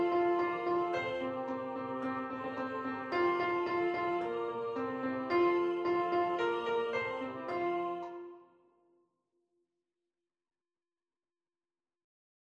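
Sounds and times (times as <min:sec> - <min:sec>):
tenor voice singing: 0:00.0 - 0:08.4
piano: 0:00.0 - 0:08.5.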